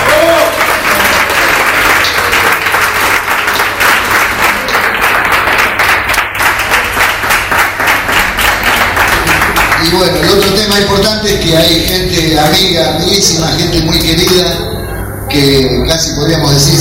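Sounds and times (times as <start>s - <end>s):
audience applause at a fundraising celebration for a cultural center: 0.0s - 11.0s
speech: 9.9s - 14.7s, 15.3s - 16.7s.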